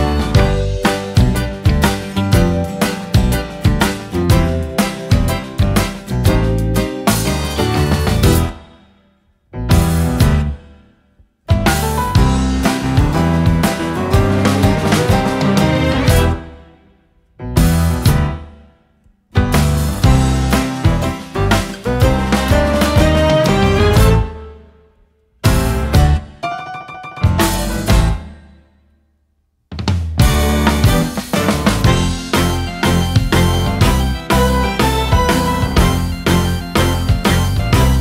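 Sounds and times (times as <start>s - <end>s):
instrumental music: 0.0s - 9.0s, 9.6s - 29.0s, 30.1s - 37.9s.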